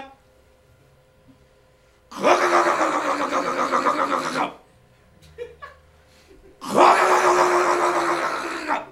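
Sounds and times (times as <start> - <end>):
voice imitating a boat engine being started with the ignition: 2.2 - 4.6, 6.6 - 8.9
laughter: 5.2 - 6.9.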